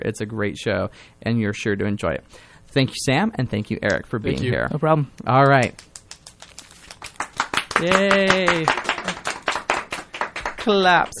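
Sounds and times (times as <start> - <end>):
speech: 0.0 - 5.9, 7.8 - 8.9, 10.6 - 11.1
people clapping: 5.4 - 11.1.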